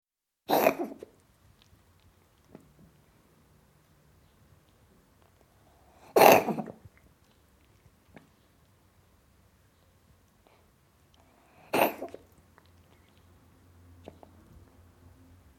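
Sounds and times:
cat coughing: 0.5 - 1.0, 6.1 - 6.8, 11.7 - 12.2.

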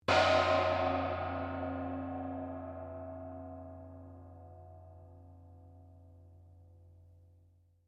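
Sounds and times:
medium Chinese gong ringing: 0.1 - 4.6.

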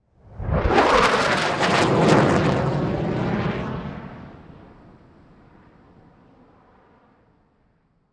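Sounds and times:
B1 airplane flying by fast: 0.2 - 4.8.

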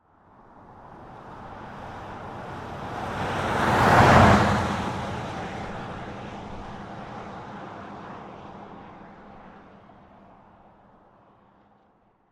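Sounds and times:
Dodge Ram pickup truck passing by at 40 mph: 0.9 - 10.0.

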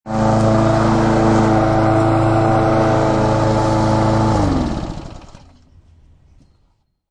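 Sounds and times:
lawn mower turning off: 0.1 - 5.6.

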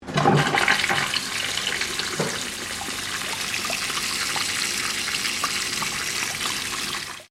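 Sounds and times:
commercial toilet urinal flushing in Australia: 0.0 - 7.3.

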